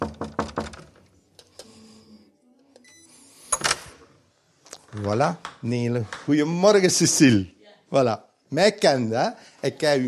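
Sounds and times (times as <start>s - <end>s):
knocking on a door: 0.0s - 0.9s
speech: 5.0s - 10.0s.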